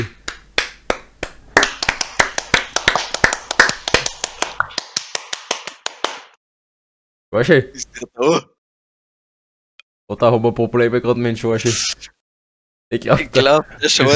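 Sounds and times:
applause: 0.3 - 6.4
speech: 7.3 - 8.6, 10.1 - 12.2, 12.9 - 14.1.

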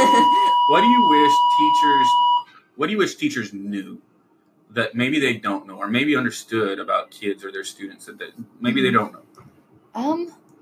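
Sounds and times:
electronic school bell tone: 0.0 - 2.4
speech: 0.7 - 4.1, 4.7 - 10.4.

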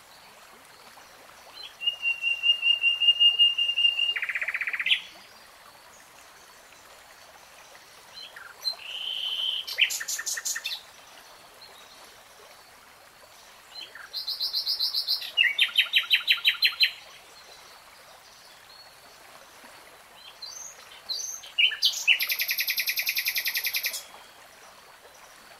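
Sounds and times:
Nightingale song: 1.5 - 5.2, 8.1 - 10.9, 13.7 - 17.1, 20.2 - 24.3.

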